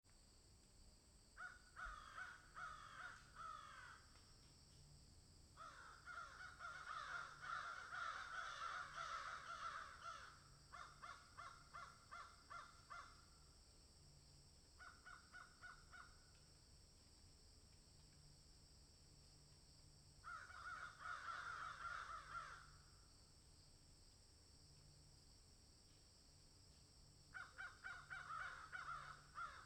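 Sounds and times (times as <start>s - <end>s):
several crows cawing in a field: 1.4s - 4.1s, 5.6s - 13.2s, 14.8s - 16.3s, 20.2s - 22.8s, 27.3s - 29.6s.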